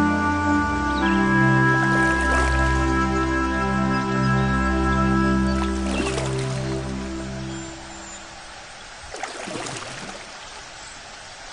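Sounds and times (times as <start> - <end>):
ambient music: 0.0 - 8.5.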